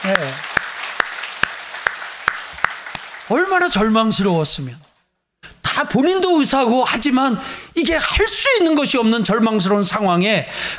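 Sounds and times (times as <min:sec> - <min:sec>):
speech: 0:00.0 - 0:00.5, 0:03.3 - 0:04.9, 0:05.8 - 0:10.7
audience applause: 0:00.0 - 0:04.0.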